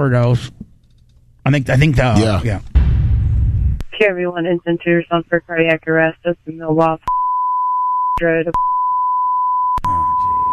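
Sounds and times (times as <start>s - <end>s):
speech: 0.0s - 0.7s, 1.4s - 2.8s, 4.0s - 7.1s, 8.2s - 8.7s
steady high-pitched censor beep covering a spoken address: 7.1s - 10.5s.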